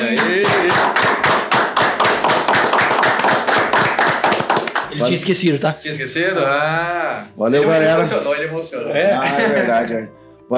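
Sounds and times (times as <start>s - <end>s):
applause: 0.1s - 5.1s
speech: 5.0s - 10.5s.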